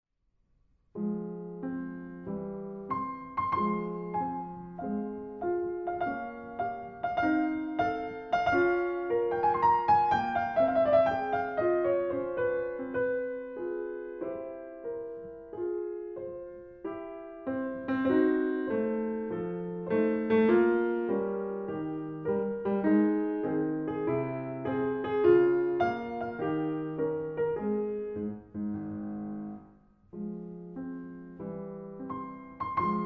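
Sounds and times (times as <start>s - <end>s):
solo piano on a keyboard: 0.9s - 33.0s.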